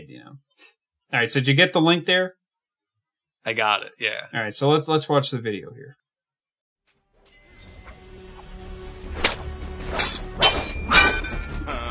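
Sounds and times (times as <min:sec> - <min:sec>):
speech: 0:00.0 - 0:02.4, 0:03.4 - 0:06.0
Lion-O's Sword of Omen clanging in a Thundercats cartoon: 0:09.2 - 0:11.6.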